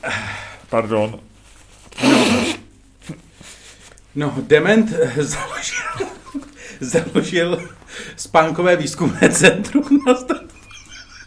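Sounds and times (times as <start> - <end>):
speech: 0.0 - 1.3, 4.2 - 5.8, 6.8 - 10.5
faint sniffs: 1.8 - 4.0
nose blowing: 1.9 - 3.2
laughter: 5.3 - 8.0, 9.0 - 11.2.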